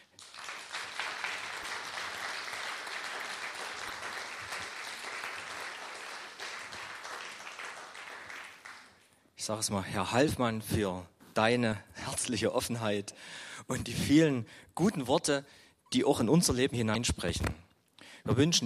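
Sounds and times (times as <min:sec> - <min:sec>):
audience applauding: 0:00.0 - 0:09.0
speech: 0:09.5 - 0:17.6, 0:18.2 - 0:18.6.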